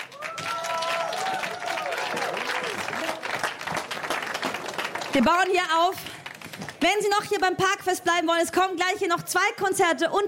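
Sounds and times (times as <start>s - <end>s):
crowd cheering and whooping: 0.0s - 3.6s
sustained applause of a sizable audience: 0.0s - 6.8s
speech: 5.2s - 6.1s, 6.8s - 10.2s.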